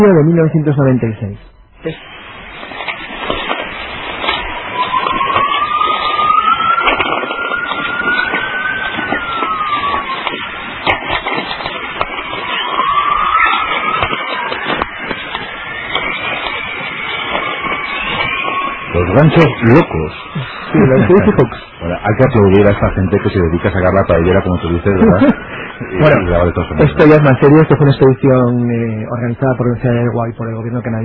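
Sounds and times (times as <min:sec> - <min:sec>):
speech: 0:00.0 - 0:02.2, 0:19.2 - 0:31.0
magnetic storm radio crackles: 0:00.0 - 0:31.0
laughter: 0:20.7 - 0:22.0.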